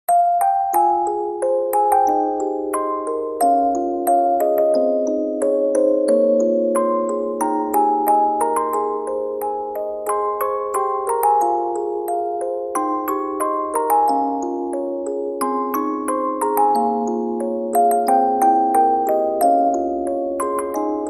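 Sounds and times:
music box: 0:00.1 - 0:21.0.

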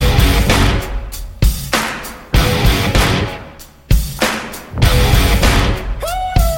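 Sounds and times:
rock guitar: 0:00.0 - 0:00.9, 0:02.4 - 0:03.5, 0:04.7 - 0:06.4.

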